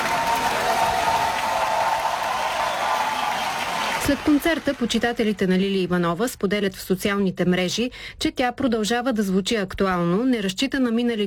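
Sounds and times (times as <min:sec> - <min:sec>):
concert audience applauding a singer: 0:00.0 - 0:05.5
speech: 0:04.1 - 0:11.2.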